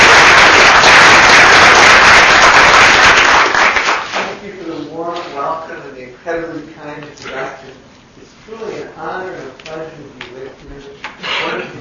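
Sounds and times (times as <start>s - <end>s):
audience applause welcoming a speaker to a lecture: 0.0s - 4.3s
speech: 6.3s - 11.7s.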